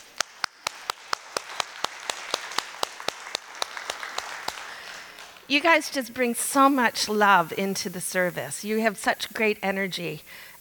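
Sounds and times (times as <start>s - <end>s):
audience clapping: 0.0s - 5.8s
speech: 5.5s - 10.5s.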